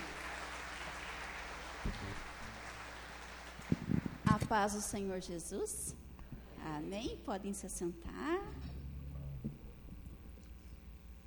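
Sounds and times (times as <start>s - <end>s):
audience applauding: 0.0s - 4.3s
speech: 4.5s - 6.0s, 6.6s - 8.7s.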